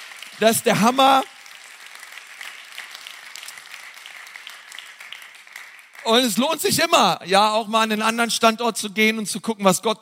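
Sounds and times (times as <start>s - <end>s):
audience applause: 0.0s - 6.3s
speech: 0.4s - 1.3s, 6.1s - 10.0s.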